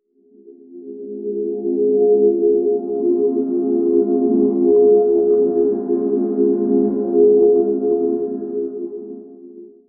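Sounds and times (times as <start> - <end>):
warm heavenly celestial glow tone: 1.4 - 9.2.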